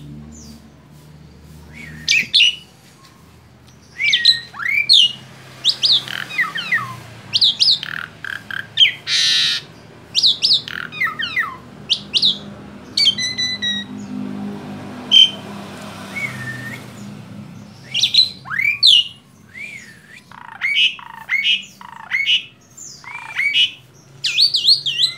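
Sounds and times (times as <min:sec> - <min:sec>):
Asian pied starling squawks and whistles: 0:01.7 - 0:02.7, 0:04.0 - 0:12.4, 0:13.0 - 0:13.9, 0:15.1 - 0:15.4, 0:16.1 - 0:16.9, 0:17.8 - 0:25.1.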